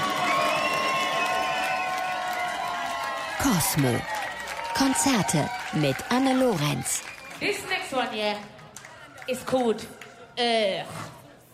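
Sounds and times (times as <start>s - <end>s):
crowd cheering and whooping: 0.0s - 7.9s
crowd clapping: 0.0s - 10.4s
speech: 3.4s - 4.2s, 4.8s - 8.6s, 9.3s - 11.1s.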